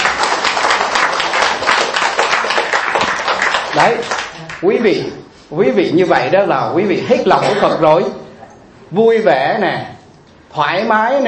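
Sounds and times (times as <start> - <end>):
audience applause: 0.0 - 4.5
speech: 3.8 - 8.2, 8.9 - 11.2.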